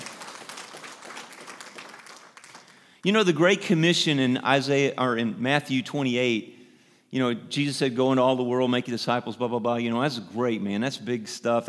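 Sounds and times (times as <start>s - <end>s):
audience clapping: 0.0s - 3.1s
speech: 3.0s - 11.6s.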